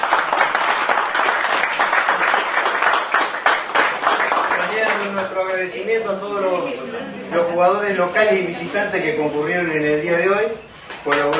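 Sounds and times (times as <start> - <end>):
audience applause: 0.0 - 5.2
speech: 5.6 - 11.3.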